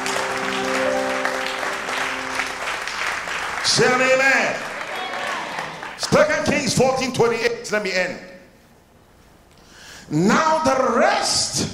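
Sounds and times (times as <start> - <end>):
audience clapping: 0.0 - 6.2
speech: 3.6 - 4.7, 6.1 - 8.3, 10.1 - 11.7.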